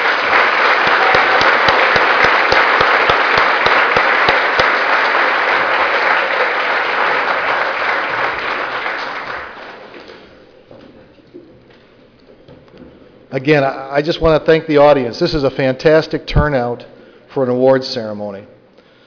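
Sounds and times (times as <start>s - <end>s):
large audience applause: 0.0s - 10.4s
speech: 13.4s - 18.6s.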